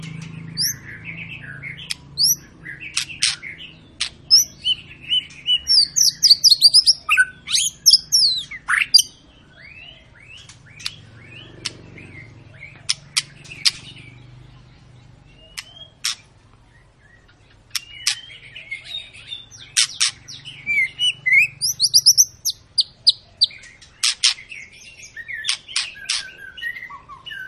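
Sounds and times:
white-rumped shama song: 0.5 - 11.5, 15.3 - 16.2, 17.1 - 27.4.

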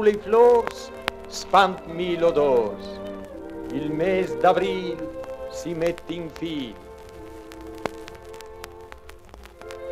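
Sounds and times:
speech: 0.0 - 3.0, 3.7 - 6.8
light spring drizzle pattering: 0.0 - 9.9.

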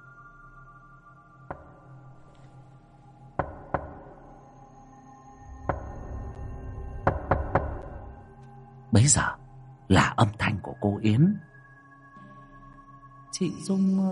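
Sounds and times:
knocking on a door: 1.5 - 1.8, 3.4 - 4.2, 5.6 - 6.0, 7.0 - 8.0
speech: 9.0 - 11.5, 13.4 - 14.0.

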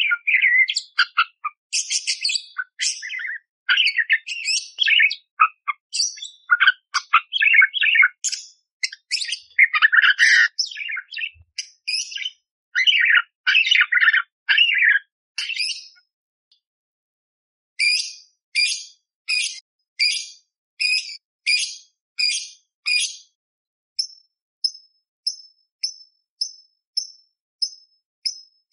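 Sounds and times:
budgerigar chattering with squeaky and grating notes: 0.0 - 16.0, 17.8 - 23.2.

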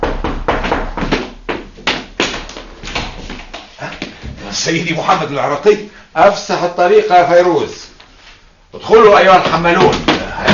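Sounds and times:
knocking on a door: 0.0 - 2.3
speech: 4.6 - 7.9, 8.7 - 10.5.

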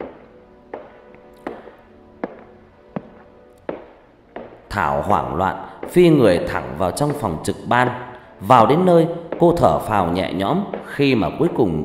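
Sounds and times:
hard-soled footsteps clacking: 0.0 - 11.8
speech: 4.8 - 11.8.

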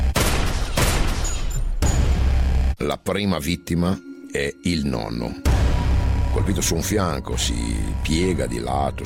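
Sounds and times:
gunshots from Browning pistols: 0.1 - 2.0
speech: 2.8 - 5.6, 6.4 - 9.0.

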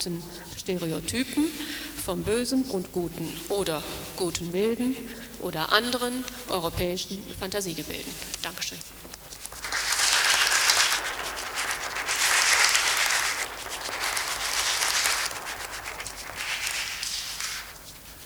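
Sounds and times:
speech: 0.0 - 9.2
audience applause after a lecture: 9.5 - 17.8.

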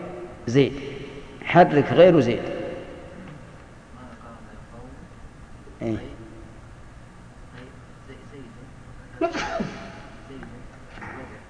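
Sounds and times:
speech: 0.5 - 0.9, 1.5 - 2.6, 5.8 - 6.1
sneeze: 9.2 - 10.0.

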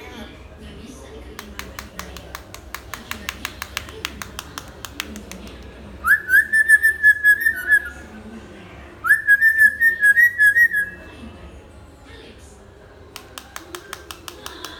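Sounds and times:
hill myna whistling: 6.0 - 8.0, 9.0 - 11.0.

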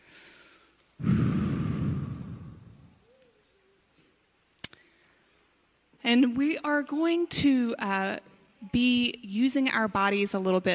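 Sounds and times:
deep breath during a church service: 0.0 - 3.1
speech: 6.1 - 10.7.

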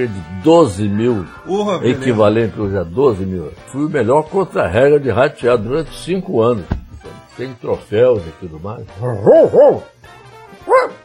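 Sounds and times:
speech: 0.0 - 11.0
former radio sound-effects man imitating a dog barking: 9.2 - 9.8, 10.6 - 11.0.

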